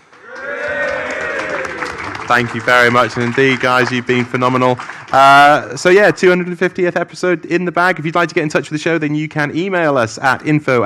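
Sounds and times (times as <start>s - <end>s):
live audience cheering: 0.0s - 4.8s
speech: 2.3s - 10.8s.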